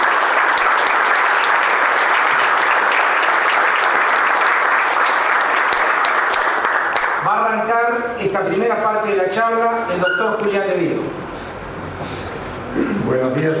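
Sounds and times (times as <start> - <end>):
audience applause: 0.0 - 7.3
speech: 8.0 - 11.2, 13.1 - 13.5.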